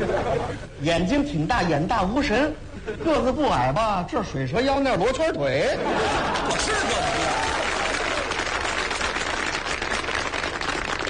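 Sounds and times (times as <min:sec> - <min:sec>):
laughter: 0:00.0 - 0:00.6, 0:05.6 - 0:08.2
speech: 0:00.3 - 0:07.2
audience applause: 0:06.2 - 0:11.0.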